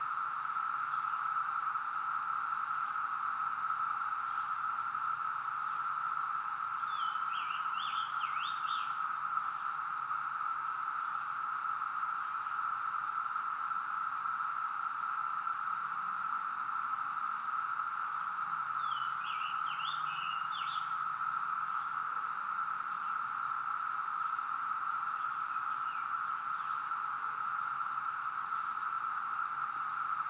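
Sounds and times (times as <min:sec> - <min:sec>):
cicada drone: 0:00.0 - 0:30.2.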